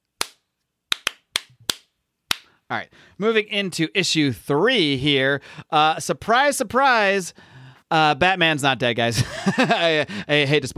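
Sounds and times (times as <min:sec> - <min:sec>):
single hand clap: 0:00.2 - 0:02.5
speech: 0:02.7 - 0:10.7
laughter: 0:09.1 - 0:10.2.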